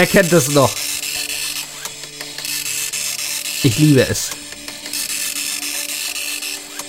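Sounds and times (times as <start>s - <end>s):
speech: 0.0s - 0.8s, 3.6s - 4.4s
dot matrix printer printing: 0.0s - 6.8s.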